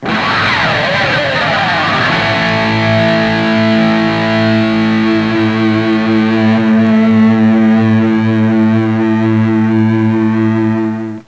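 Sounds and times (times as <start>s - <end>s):
rock music ringtone: 0.0s - 11.2s.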